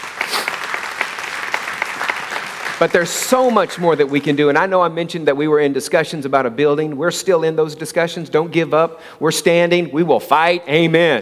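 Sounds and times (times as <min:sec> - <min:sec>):
audience applause: 0:00.0 - 0:04.8
speech: 0:02.8 - 0:11.1.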